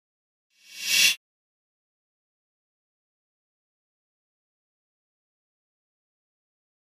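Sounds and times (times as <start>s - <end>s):
pop-up electric buzz: 0.6s - 1.2s.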